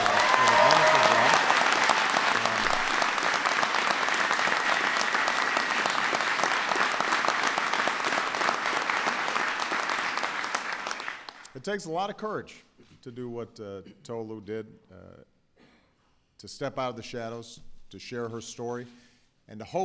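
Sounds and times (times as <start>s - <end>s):
large audience applause: 0.0s - 11.5s
speech: 11.6s - 15.0s, 16.4s - 19.8s.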